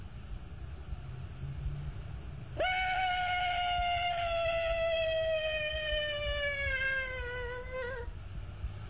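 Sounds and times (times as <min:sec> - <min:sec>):
low rumble: 0:00.0 - 0:08.8
human imitation of an elephant cry: 0:02.6 - 0:08.1.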